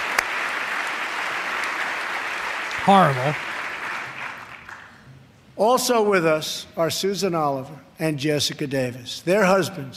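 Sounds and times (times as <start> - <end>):
audience applause: 0.0 - 4.9
speech: 2.8 - 3.5, 5.6 - 9.9.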